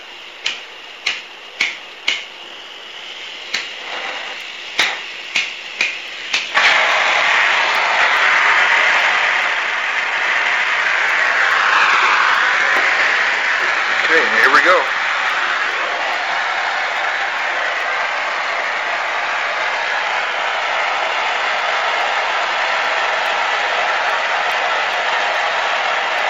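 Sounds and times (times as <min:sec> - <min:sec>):
torch flame roaring, lit to heat bottle: 0:00.0 - 0:26.2
torch igniter clicking: 0:00.2 - 0:19.2.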